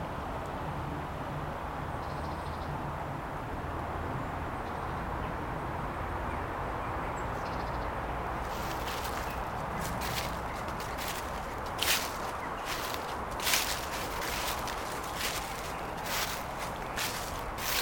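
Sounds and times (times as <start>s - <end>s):
park soundscape: 0.0s - 17.8s.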